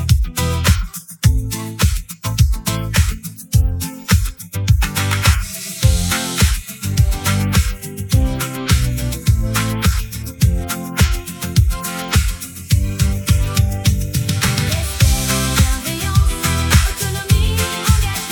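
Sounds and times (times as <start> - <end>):
instrumental music: 0.0 - 18.3
choir singing a refrain: 14.7 - 18.3.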